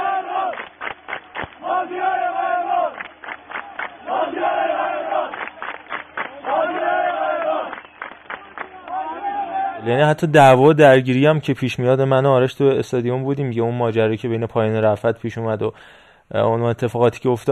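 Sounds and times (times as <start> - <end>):
stadium crowd chanting a player's name: 0.0 - 0.7, 1.5 - 5.6, 6.2 - 9.9
sharp rhythmic clapping: 0.0 - 9.2
speech: 9.8 - 17.5.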